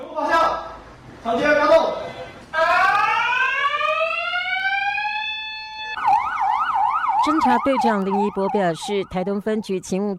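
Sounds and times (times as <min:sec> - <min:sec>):
speech: 0:01.2 - 0:02.0, 0:07.4 - 0:10.1
post office electronic alarm set off during a robbery: 0:02.6 - 0:10.0.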